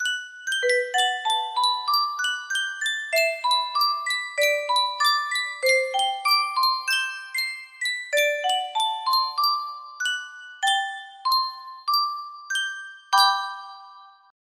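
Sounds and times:
Sankyo music box: 0.0 - 14.4.

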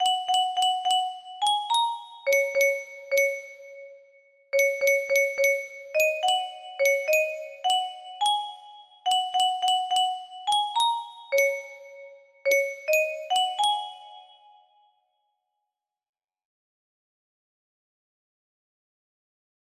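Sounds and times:
music box: 0.0 - 14.9.

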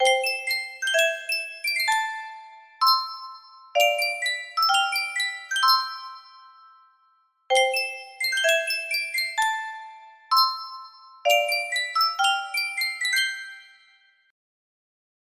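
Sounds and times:
Sankyo custom tune music box: 0.0 - 14.3.

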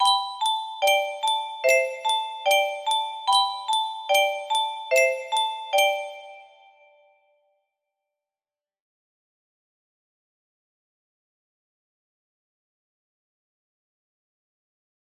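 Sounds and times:
music box melody: 0.0 - 7.0.

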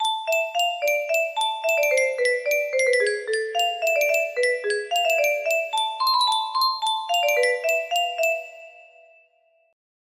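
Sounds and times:
music box melody pitched five semitones down: 0.0 - 9.4.

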